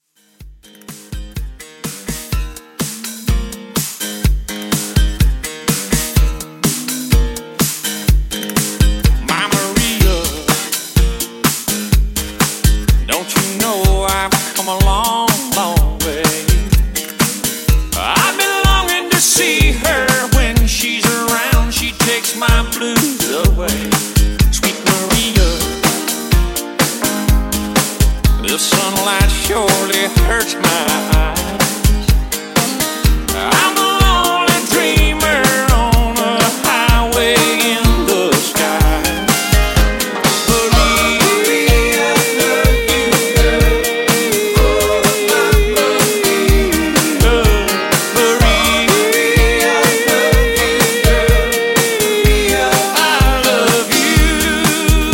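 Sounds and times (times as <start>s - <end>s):
country drum loop: 0.2s - 55.1s.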